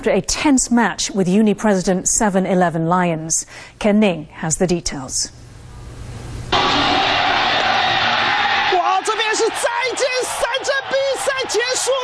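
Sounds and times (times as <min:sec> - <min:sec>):
speech: 0:00.0 - 0:05.4
baseball crowd roaring: 0:06.5 - 0:12.0
excited commentators shouting: 0:06.6 - 0:12.0.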